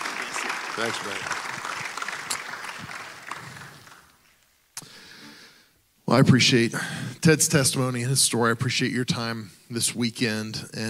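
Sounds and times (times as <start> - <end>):
crowd applauding: 0.0 - 4.2
speech: 0.8 - 1.4, 6.1 - 10.8.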